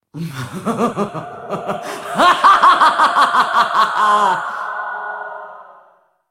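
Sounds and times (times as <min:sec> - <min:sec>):
person laughing: 0:00.2 - 0:04.8.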